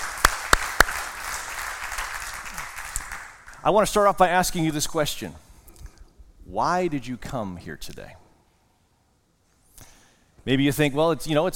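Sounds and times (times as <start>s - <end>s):
audience applauding: 0.0s - 3.6s
speech: 3.6s - 5.4s, 6.5s - 8.2s, 10.4s - 11.5s.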